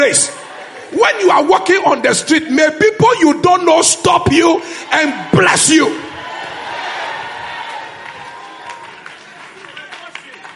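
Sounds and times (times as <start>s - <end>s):
speech: 0.0s - 6.2s
crowd shouting and cheering: 0.0s - 10.5s
hand claps: 7.7s - 10.5s.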